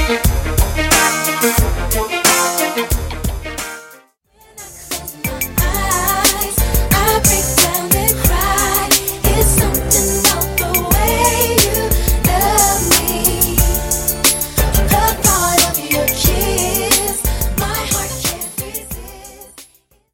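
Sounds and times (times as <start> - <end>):
old school hip hop and R and B pop music: 0.0 - 19.8.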